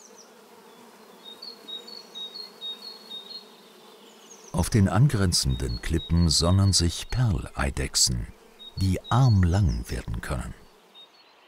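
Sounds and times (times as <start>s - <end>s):
swarm of wasps buzzing over sand: 0.0s - 11.2s
speech: 4.6s - 10.6s.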